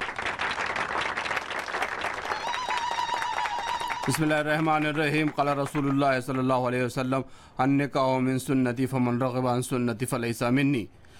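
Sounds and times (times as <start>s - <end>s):
wedding guests applauding: 0.0s - 6.5s
speech: 4.0s - 11.0s.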